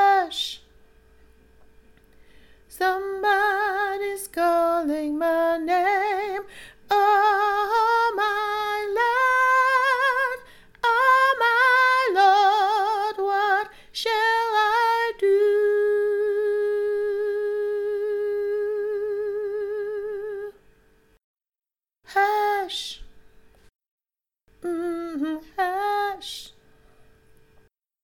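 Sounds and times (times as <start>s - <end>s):
soprano singing: 0.0s - 0.6s, 2.7s - 20.6s, 22.1s - 23.1s, 24.6s - 26.6s.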